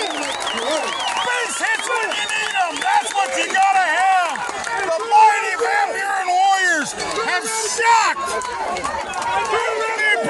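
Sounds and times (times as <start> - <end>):
crowd cheering wildly at baseball game: 0.0 - 10.2
speech: 0.6 - 1.0.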